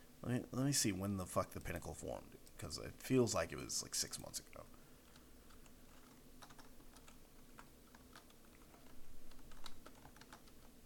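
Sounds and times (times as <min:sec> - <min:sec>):
speech: 0:00.2 - 0:04.8
typing on a computer keyboard: 0:05.0 - 0:10.8.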